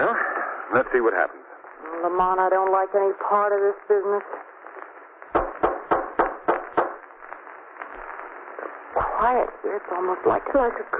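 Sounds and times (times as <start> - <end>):
speech: 0.7 - 1.4, 2.0 - 4.5, 9.2 - 10.9
knocking on a door: 5.4 - 7.0.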